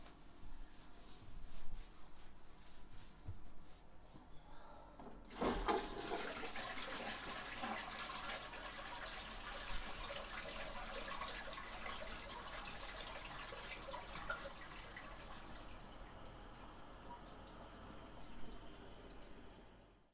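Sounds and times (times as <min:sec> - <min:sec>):
urinating in a toilet in the morning: 0:05.0 - 0:20.1.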